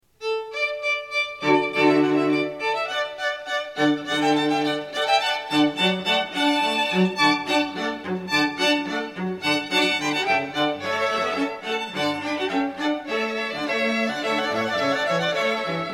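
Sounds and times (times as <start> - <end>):
strings: 0.2 - 15.9.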